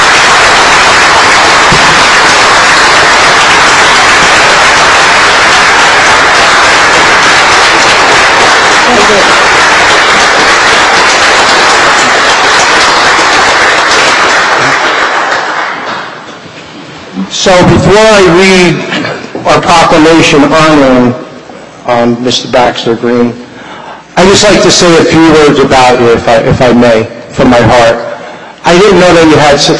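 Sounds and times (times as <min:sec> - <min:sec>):
crowd applauding: 0:00.0 - 0:16.6
speech: 0:17.4 - 0:21.2, 0:21.9 - 0:23.4, 0:24.3 - 0:28.0, 0:28.7 - 0:29.7.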